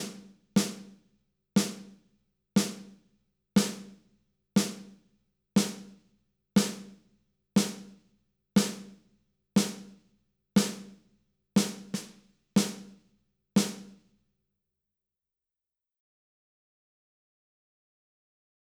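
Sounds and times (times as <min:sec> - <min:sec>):
snare drum: 0:00.0 - 0:01.0, 0:01.6 - 0:02.0, 0:02.6 - 0:03.0, 0:03.6 - 0:04.0, 0:04.6 - 0:05.0, 0:05.6 - 0:06.0, 0:06.6 - 0:07.0, 0:07.6 - 0:08.0, 0:08.6 - 0:09.0, 0:09.6 - 0:10.0, 0:10.6 - 0:11.0, 0:11.6 - 0:13.0, 0:13.6 - 0:14.0.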